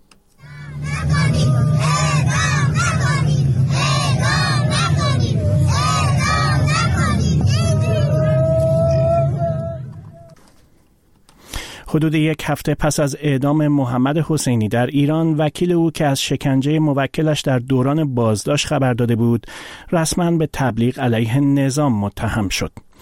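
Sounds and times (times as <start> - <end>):
crowd shouting and wailing: 0.4 - 10.5
low rumbling hum: 0.4 - 10.8
speech: 12.0 - 22.9.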